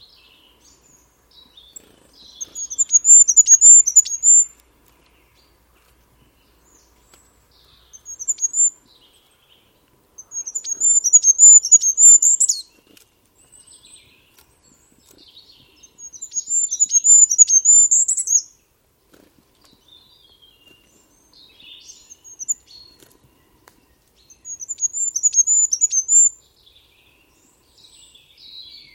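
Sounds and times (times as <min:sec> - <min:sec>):
bird twittering and chirping: 0:00.1 - 0:18.6, 0:19.6 - 0:28.9.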